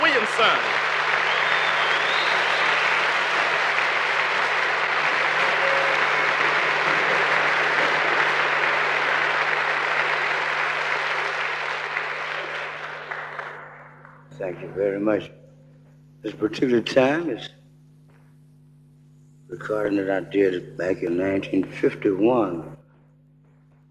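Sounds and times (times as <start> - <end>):
audience applause: 0.0 - 14.2
speech: 0.4 - 0.9, 14.5 - 15.4, 16.2 - 17.6, 19.5 - 22.8.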